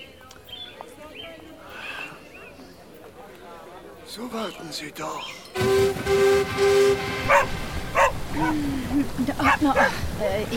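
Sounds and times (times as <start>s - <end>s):
speech: 4.2s - 6.1s, 8.4s - 10.5s
dog barking: 7.3s - 8.6s, 9.4s - 10.0s.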